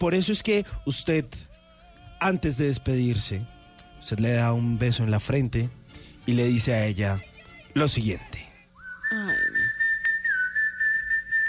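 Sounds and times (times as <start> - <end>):
speech: 0.0 - 1.5, 2.2 - 8.4
person whistling in imitation of a dove's song: 8.8 - 11.4.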